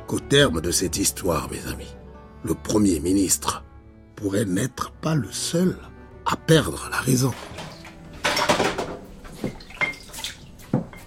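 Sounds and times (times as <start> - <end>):
speech: 0.1 - 3.6, 4.2 - 7.7
plates and utensils clinking and splashing: 7.4 - 11.0
faucet running: 9.3 - 11.0.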